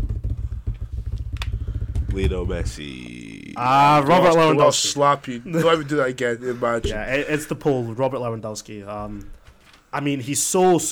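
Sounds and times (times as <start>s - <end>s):
drum roll: 0.0s - 3.6s
speech: 2.1s - 10.9s.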